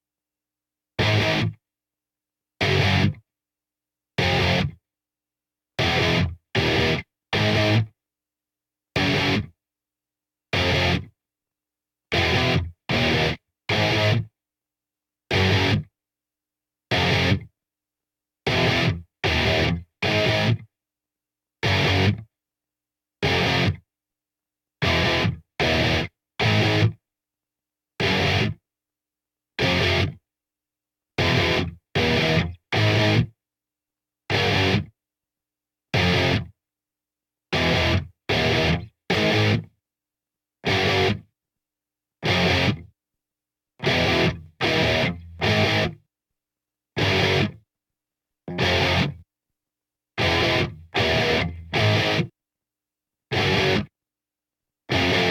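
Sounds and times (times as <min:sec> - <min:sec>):
guitar: 0:01.0 - 0:01.6, 0:02.6 - 0:03.2, 0:04.2 - 0:04.8, 0:05.8 - 0:07.9, 0:09.0 - 0:09.5, 0:10.5 - 0:11.1, 0:12.1 - 0:14.3, 0:15.3 - 0:15.9, 0:16.9 - 0:17.5, 0:18.5 - 0:20.7, 0:21.6 - 0:22.3, 0:23.2 - 0:23.8, 0:24.8 - 0:27.0, 0:28.0 - 0:28.6, 0:29.6 - 0:30.2, 0:31.2 - 0:33.4, 0:34.3 - 0:34.9, 0:36.0 - 0:36.5, 0:37.5 - 0:39.8, 0:40.6 - 0:41.3, 0:42.2 - 0:42.9, 0:43.8 - 0:46.1, 0:47.0 - 0:47.6, 0:48.5 - 0:49.2, 0:50.2 - 0:52.4, 0:53.3 - 0:53.9, 0:54.9 - 0:55.3.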